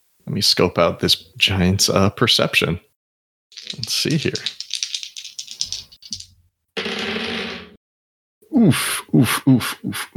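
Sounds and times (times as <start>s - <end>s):
speech: 0.3s - 2.9s, 3.7s - 4.6s, 8.6s - 10.1s
dice rolling: 3.6s - 7.6s.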